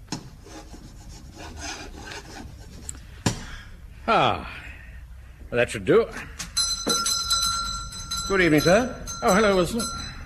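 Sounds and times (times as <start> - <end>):
chalk scratching across a blackboard: 0.1 - 2.9
speech: 4.1 - 4.6, 5.5 - 6.4, 8.3 - 10.0.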